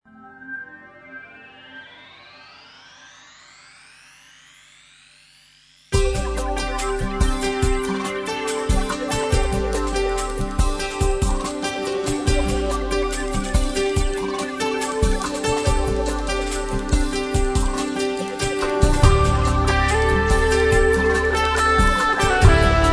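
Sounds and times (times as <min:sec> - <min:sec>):
acoustic jungle music: 0:06.0 - 0:22.9.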